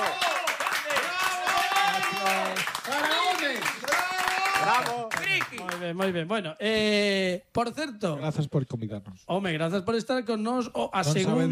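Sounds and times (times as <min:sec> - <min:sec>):
audience applause: 0:00.0 - 0:05.9
speech: 0:04.6 - 0:11.5.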